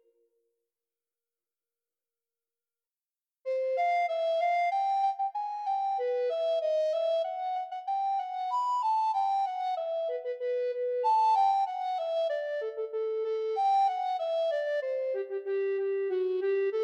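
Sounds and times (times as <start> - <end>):
alto recorder piece: 3.5 - 16.8.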